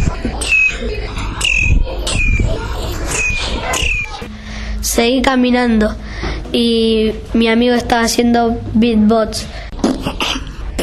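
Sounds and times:
birds in the street squawking and screeching as they fight: 0.0s - 4.3s
steady rumbling background: 0.0s - 10.8s
speech: 5.0s - 9.6s.

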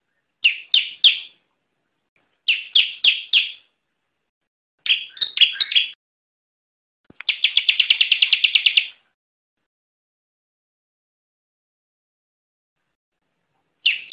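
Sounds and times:
Bar-winged prinia song: 0.0s - 1.5s, 2.4s - 3.8s, 4.8s - 6.0s, 7.2s - 9.1s, 13.8s - 14.1s.

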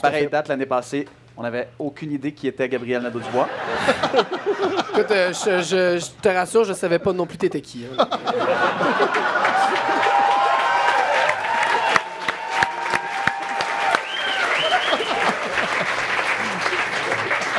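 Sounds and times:
speech: 0.0s - 10.0s
laughter: 3.1s - 5.6s, 7.8s - 12.1s, 14.3s - 17.5s
audience applause: 8.6s - 17.5s.

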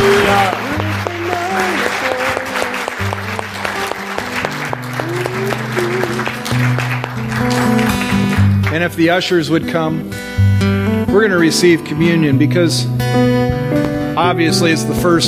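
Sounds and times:
audience clapping: 0.0s - 9.1s
speech: 8.9s - 10.4s, 11.2s - 13.6s, 14.2s - 15.2s.

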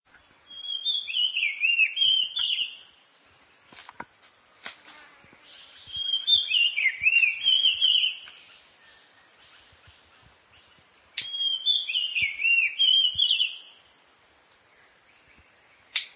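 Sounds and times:
oriental magpie-robin Copsychus saularis musicus whistling: 0.5s - 2.8s, 5.8s - 8.3s, 11.2s - 13.7s.

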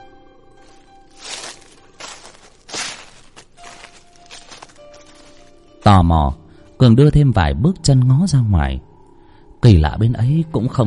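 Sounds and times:
rustling in a bush: 0.6s - 5.7s
speech: 5.8s - 8.9s, 9.6s - 10.8s.

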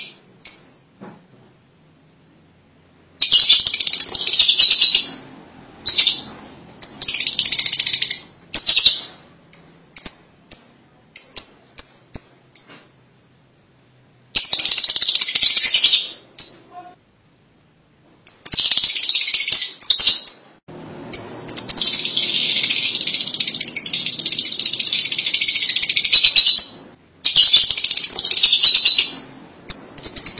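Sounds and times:
lovebird chattering: 0.0s - 0.8s, 3.2s - 5.2s, 5.8s - 12.8s, 14.4s - 17.0s, 18.3s - 20.5s, 21.1s - 30.3s.

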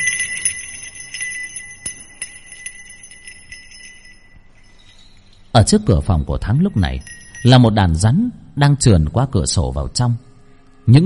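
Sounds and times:
bells ringing: 0.0s - 8.6s
speech: 5.6s - 10.3s, 10.9s - 11.0s.

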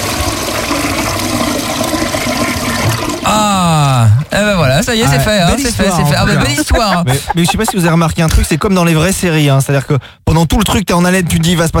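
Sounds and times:
toilet flushing after cleaning the pipes: 0.0s - 6.4s
speech: 4.4s - 11.7s
laughter: 5.0s - 8.8s.

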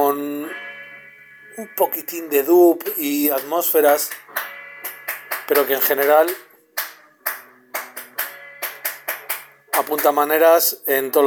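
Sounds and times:
speech: 1.6s - 4.3s, 5.5s - 6.5s, 9.8s - 11.2s
hand claps from someone in the street clapping at a window: 2.8s - 10.6s.

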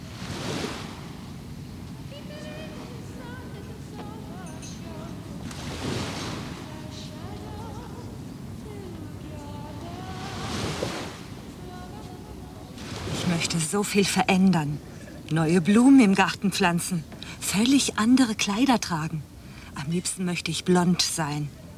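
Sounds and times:
sea surf rolling in: 0.0s - 18.5s
waves breaking: 0.0s - 21.7s
wind: 0.0s - 21.7s
speech: 13.6s - 21.6s.

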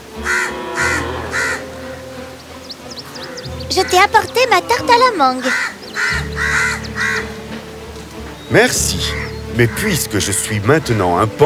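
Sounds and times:
crow cawing: 0.1s - 2.1s, 3.0s - 7.5s, 9.1s - 9.8s
speech: 3.7s - 5.7s, 8.5s - 11.4s.

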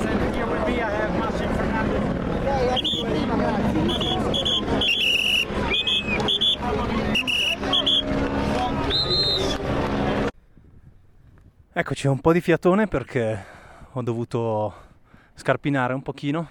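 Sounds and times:
crowd chatter: 0.0s - 10.4s
team support vehicles passing on road: 0.0s - 10.4s
tire squeals: 2.7s - 3.2s, 3.8s - 9.8s
speech: 11.9s - 14.8s, 15.4s - 16.4s.

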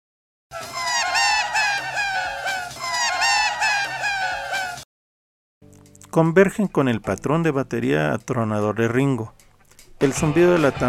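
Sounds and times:
sped-up tape loop of a man's voice resembling seagull cries: 0.5s - 4.8s
speech: 6.1s - 9.4s, 10.0s - 10.8s.

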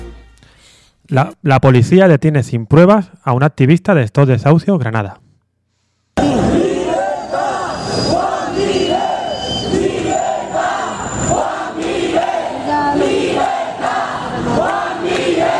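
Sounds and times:
speech: 1.1s - 5.3s
crowd of protesters shouting outside courthouse: 6.2s - 15.5s.

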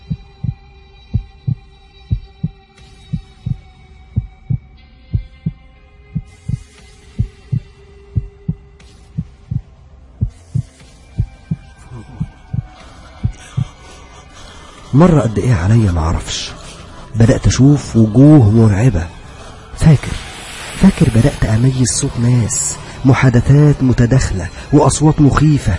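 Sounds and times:
hospital heart monitor heartbeat thumps: 0.0s - 5.6s, 6.2s - 8.6s, 9.2s - 13.8s
speech: 15.0s - 16.6s, 17.2s - 19.1s, 19.8s - 20.2s, 20.9s - 25.7s.

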